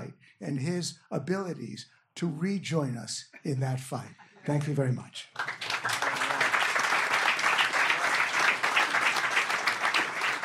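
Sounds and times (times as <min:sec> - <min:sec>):
speech: 0:00.4 - 0:05.6
crowd applause: 0:05.3 - 0:10.4.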